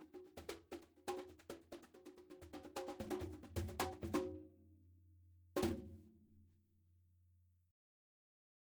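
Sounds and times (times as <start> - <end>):
congas: 0.0 - 4.6, 5.6 - 6.1.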